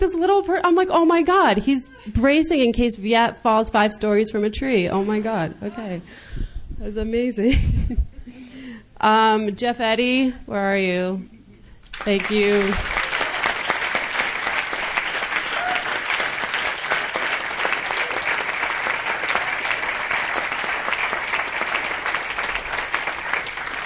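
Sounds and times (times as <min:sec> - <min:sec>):
speech: 0:00.0 - 0:06.2, 0:06.8 - 0:08.1, 0:09.0 - 0:11.3, 0:12.0 - 0:13.0
audience applause: 0:11.9 - 0:23.8.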